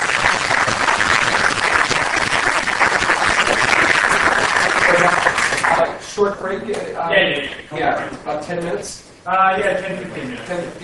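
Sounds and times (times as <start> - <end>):
audience applause: 0.0 - 5.8
speech: 6.2 - 10.8.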